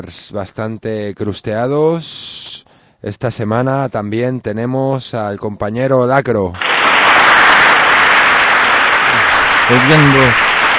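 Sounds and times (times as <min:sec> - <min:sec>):
speech: 0:00.0 - 0:06.7, 0:09.7 - 0:10.6
audience applause: 0:06.6 - 0:10.7.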